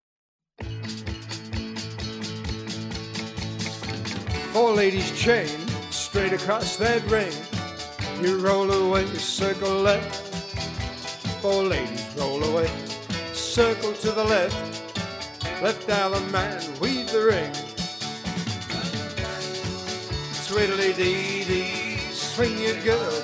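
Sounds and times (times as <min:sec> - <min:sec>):
square dance music: 0:00.7 - 0:23.2
person singing: 0:04.4 - 0:10.3, 0:11.4 - 0:14.8, 0:15.5 - 0:23.2.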